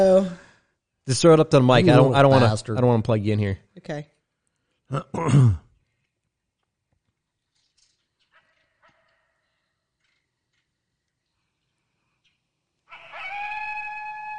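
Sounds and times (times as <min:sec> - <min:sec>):
speech: 0:01.1 - 0:04.1, 0:04.9 - 0:05.6
coyote howling: 0:12.9 - 0:14.3.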